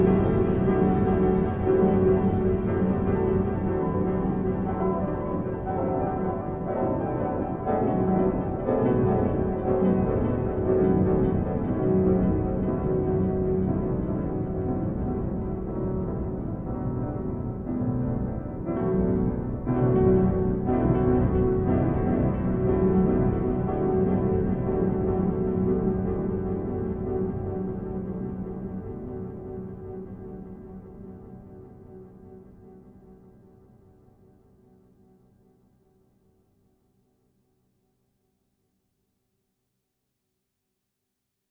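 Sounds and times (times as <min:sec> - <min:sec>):
slow low vibrating piano: 0:00.0 - 0:34.4.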